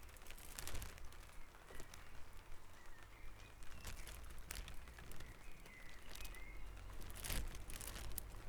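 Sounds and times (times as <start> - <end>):
rustling and clicking: 0.1 - 2.0, 3.6 - 8.4
birds singing at dawn: 2.8 - 8.0.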